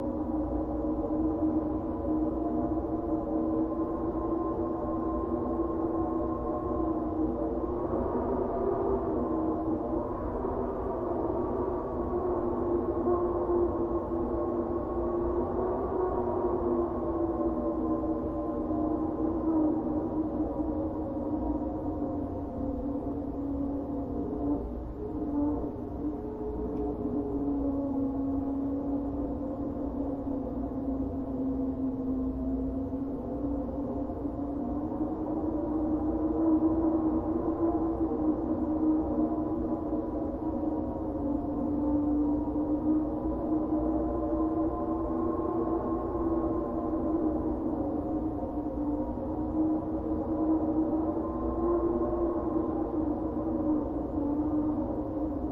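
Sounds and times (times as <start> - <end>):
ambient wind: 0.0 - 55.5.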